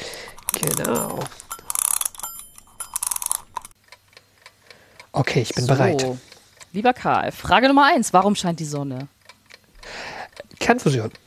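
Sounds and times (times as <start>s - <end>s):
wind-up alarm clock ticking: 0.0s - 11.2s
wind-up alarm clock bell ringing: 0.5s - 3.7s
speech: 0.6s - 1.4s, 5.2s - 9.1s, 10.7s - 11.2s.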